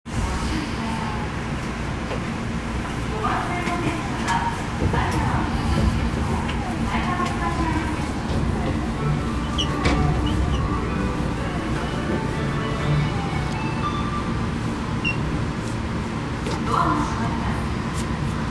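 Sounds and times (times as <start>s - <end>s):
train: 0.0s - 18.4s.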